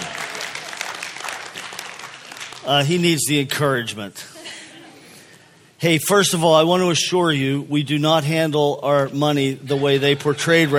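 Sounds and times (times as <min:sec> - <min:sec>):
audience applause: 0:00.0 - 0:02.8
speech: 0:02.6 - 0:04.3, 0:05.8 - 0:10.7.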